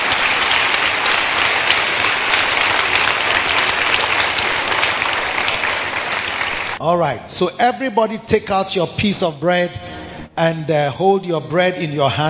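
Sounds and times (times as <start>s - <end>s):
audience clapping: 0.0s - 6.8s
speech: 6.8s - 12.2s.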